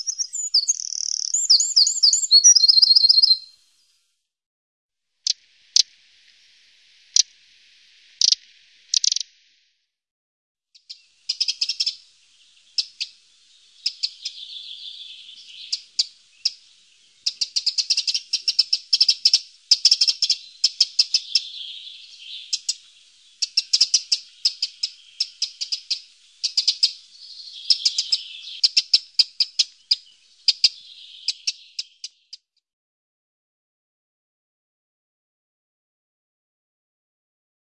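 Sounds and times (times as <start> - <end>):
Eurasian wren singing: 0.0 - 3.5, 8.2 - 9.3, 10.8 - 32.4.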